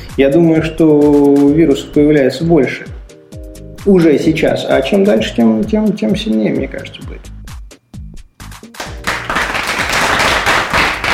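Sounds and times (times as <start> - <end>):
speech: 0.2 - 3.0, 3.8 - 7.3
sparse applause: 8.5 - 11.1.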